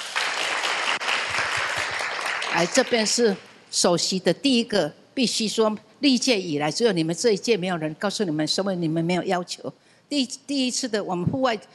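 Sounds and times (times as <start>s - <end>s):
applause at a Buddhist dharma hall: 0.0s - 3.5s
speech: 2.6s - 11.7s.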